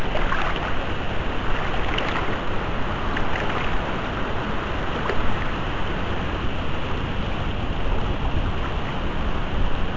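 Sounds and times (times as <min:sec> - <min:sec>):
brief brighter splashes: 0:00.0 - 0:05.7
churning water while swimming in the Charente river: 0:00.0 - 0:09.8.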